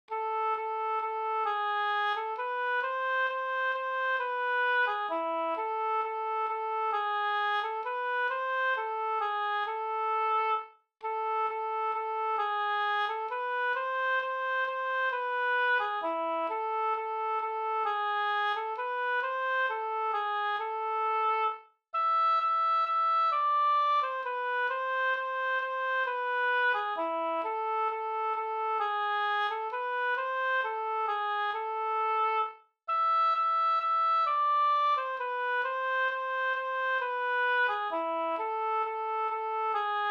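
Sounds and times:
folk melody for a long dance: 0:00.1 - 0:40.0.

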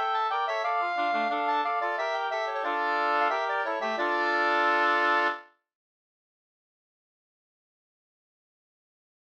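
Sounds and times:
polska dance tune: 0:00.0 - 0:05.5.

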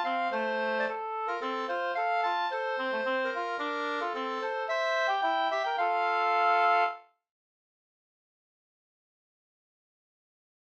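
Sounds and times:
slangpolska folk dance tune: 0:00.0 - 0:07.0.

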